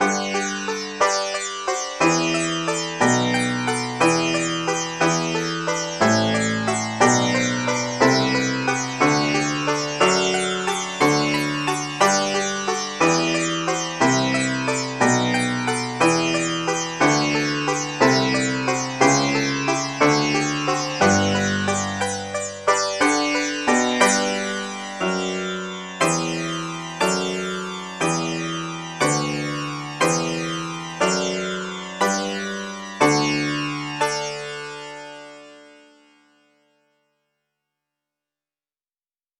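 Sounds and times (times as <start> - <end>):
sitar: 0.0 - 37.0.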